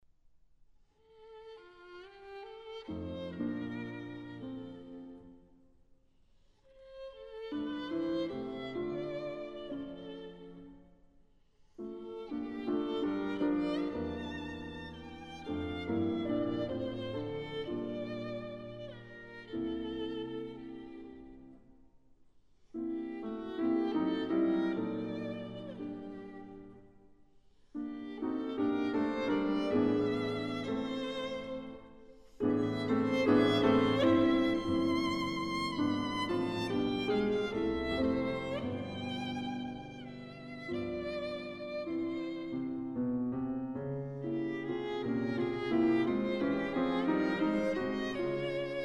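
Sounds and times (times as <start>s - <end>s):
violin sonata: 1.0s - 5.4s, 6.7s - 10.9s, 11.8s - 21.6s, 22.8s - 27.1s, 27.7s - 48.8s.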